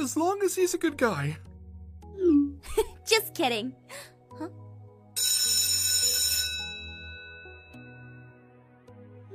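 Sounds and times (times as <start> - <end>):
speech: 0.1 - 1.5, 2.6 - 4.6
school bell ringing: 5.2 - 8.1.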